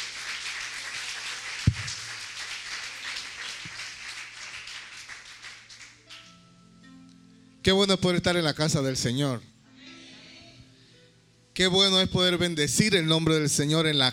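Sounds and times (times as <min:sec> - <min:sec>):
audience applauding: 0:00.0 - 0:06.2
speech: 0:07.6 - 0:09.5, 0:11.6 - 0:14.1.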